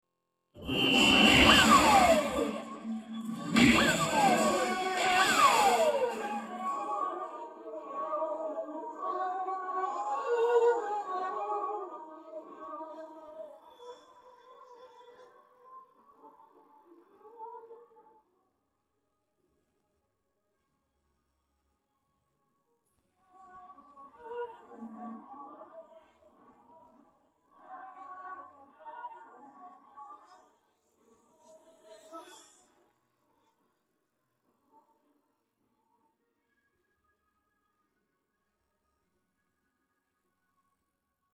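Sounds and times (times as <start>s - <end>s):
person singing: 0.6s - 13.6s.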